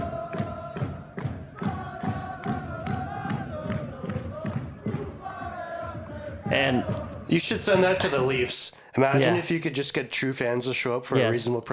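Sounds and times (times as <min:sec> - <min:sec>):
large hockey arena crowd chanting: 0:00.0 - 0:08.5
speech: 0:06.6 - 0:11.7.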